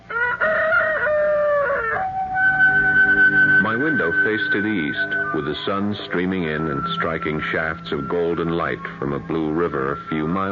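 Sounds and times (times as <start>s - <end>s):
rooster crowing: 0.0s - 5.4s
speech: 4.2s - 10.4s.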